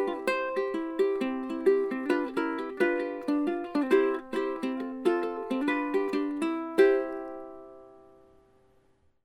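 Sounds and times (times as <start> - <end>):
Beltona Concert High Country Cone resonator guitar: 0.0 - 8.6.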